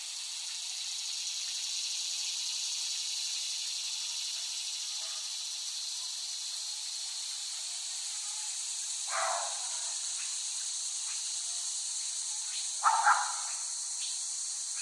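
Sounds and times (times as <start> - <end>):
cicadas buzzing chorus: 0.0 - 14.8.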